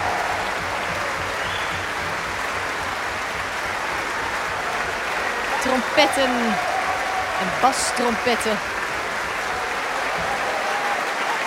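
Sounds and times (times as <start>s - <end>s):
large concert audience applauding orchestra wind players: 0.0s - 11.4s
speech: 5.8s - 6.7s, 7.4s - 8.8s.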